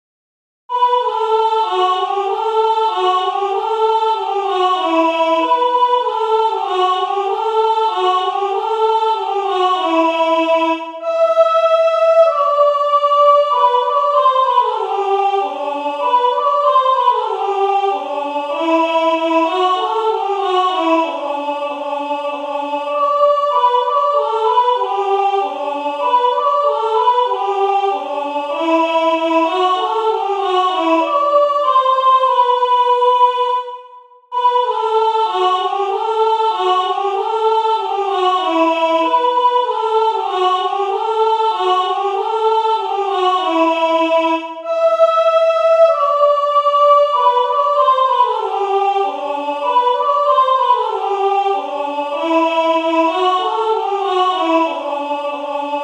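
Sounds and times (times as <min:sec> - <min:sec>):
soprano singing: 0:00.7 - 0:55.8.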